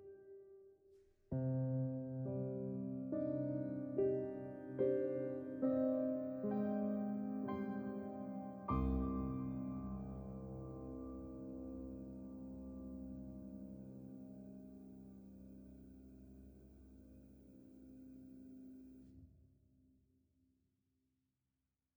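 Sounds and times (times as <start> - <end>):
mystical piano solo: 1.3 - 18.4.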